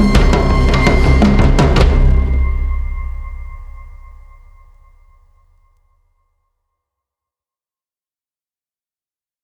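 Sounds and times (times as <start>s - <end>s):
drum runner pattern: 0.0s - 4.8s.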